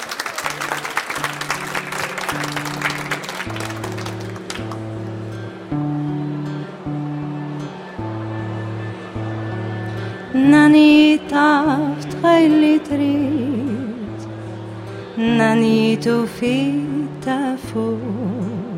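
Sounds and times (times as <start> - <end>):
audience applause: 0.0 - 5.4
sustained low instrumental tones: 1.3 - 18.7
speech: 15.5 - 17.8.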